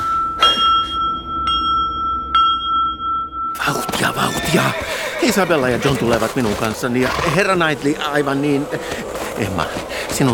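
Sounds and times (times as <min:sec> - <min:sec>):
bell ringing: 0:00.0 - 0:05.2
speech: 0:03.7 - 0:10.3.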